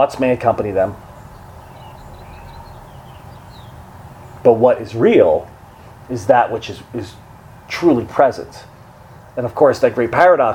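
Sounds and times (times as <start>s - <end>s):
speech: 0.0s - 1.1s, 4.4s - 5.5s, 6.1s - 8.7s, 9.4s - 10.5s
birds chirping outdoors: 0.0s - 10.5s
breezy hiss outdoors: 0.0s - 10.5s
steady low rumble outdoors: 0.9s - 4.4s.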